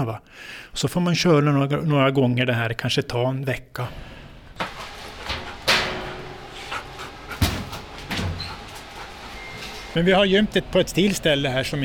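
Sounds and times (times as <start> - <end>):
speech: 0.0 - 4.2, 10.0 - 11.8
dog panting and sniffing: 4.8 - 10.0.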